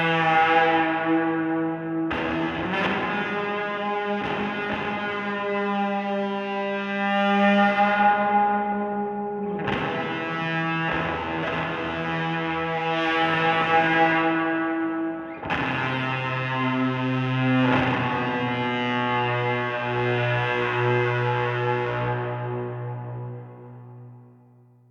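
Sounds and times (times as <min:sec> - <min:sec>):
electric guitar through evil filter and plate reverb: 0:00.0 - 0:24.7.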